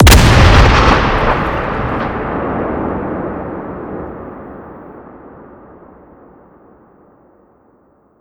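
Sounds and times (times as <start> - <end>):
explosion: 0.0 - 6.3.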